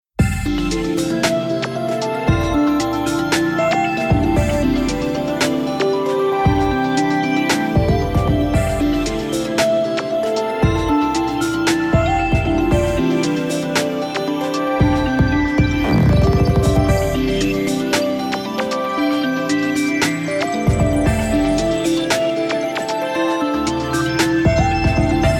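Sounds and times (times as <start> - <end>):
music: 0.2 - 25.3.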